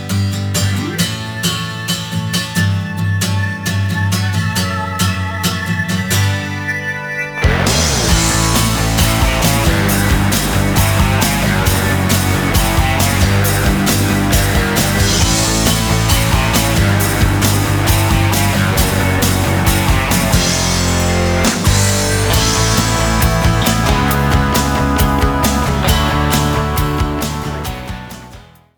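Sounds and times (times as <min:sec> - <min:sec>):
rock music: 0:00.3 - 0:28.7.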